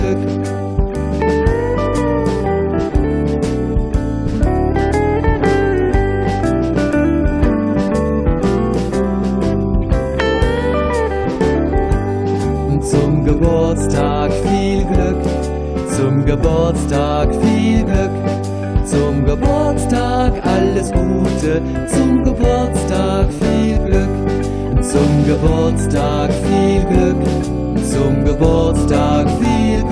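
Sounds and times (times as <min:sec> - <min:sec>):
birthday song in German: 0:00.0 - 0:29.9.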